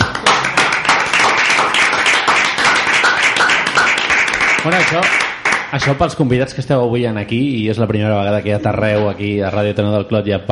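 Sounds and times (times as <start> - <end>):
audience applause: 0.0 - 6.0
speech: 4.6 - 10.5.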